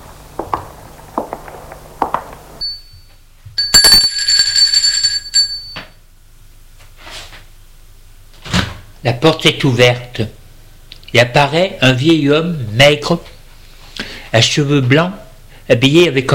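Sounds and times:
footstep thuds: 0:00.0 - 0:03.8
doorbell ringing at a house door: 0:02.6 - 0:06.0
speech: 0:09.0 - 0:10.4, 0:11.1 - 0:13.3, 0:14.3 - 0:16.3.

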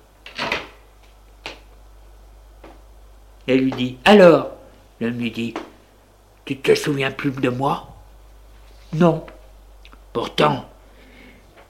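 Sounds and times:
door closing: 0:00.2 - 0:00.8
speech: 0:03.5 - 0:05.6, 0:06.5 - 0:07.9, 0:08.9 - 0:09.3, 0:10.1 - 0:10.7.

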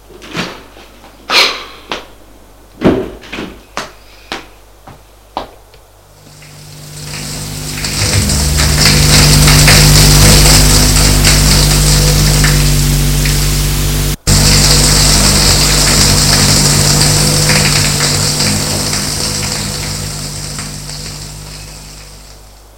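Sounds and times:
shower running water: 0:06.2 - 0:22.7.

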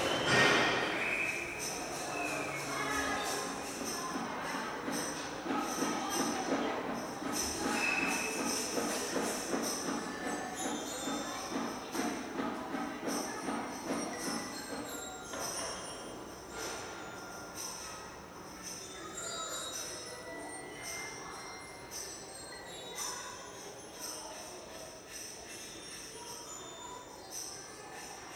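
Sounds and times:
children at a nursery banging and shaking musical instruments: 0:00.0 - 0:18.7
jingling bells and bright rattles: 0:01.3 - 0:28.3.

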